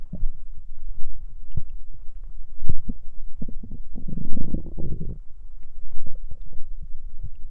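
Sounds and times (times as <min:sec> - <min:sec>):
stomach growling: 0:00.0 - 0:07.4.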